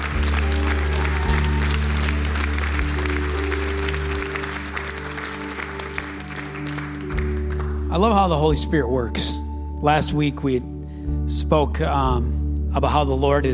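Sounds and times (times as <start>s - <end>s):
church congregation applauding the pastor after a prayer: 0.0s - 8.5s
speech: 7.9s - 13.5s.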